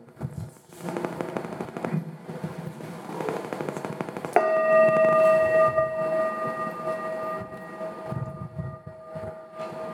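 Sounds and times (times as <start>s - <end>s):
meditation bell struck and ringing: 4.4s - 9.9s.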